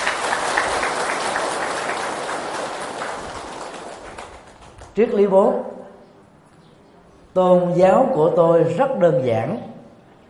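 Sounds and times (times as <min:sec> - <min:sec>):
audience applause: 0:00.0 - 0:04.9
speech: 0:05.0 - 0:05.7, 0:07.4 - 0:09.7.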